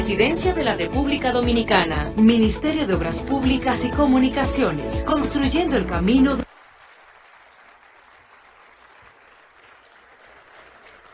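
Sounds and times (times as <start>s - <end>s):
speech: 0.1s - 6.4s
audience applause: 6.4s - 11.1s.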